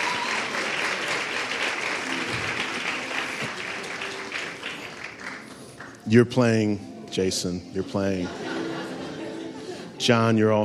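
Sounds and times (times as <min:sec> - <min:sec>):
church audience giving congratulatory applause: 0:00.0 - 0:06.0
speech: 0:06.1 - 0:08.5, 0:10.0 - 0:10.6
laughter: 0:07.8 - 0:10.1.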